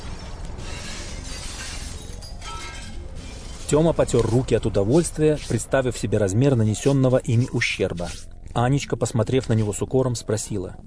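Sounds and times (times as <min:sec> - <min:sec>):
glass shattering: 0:00.0 - 0:03.8
speech: 0:03.7 - 0:10.8.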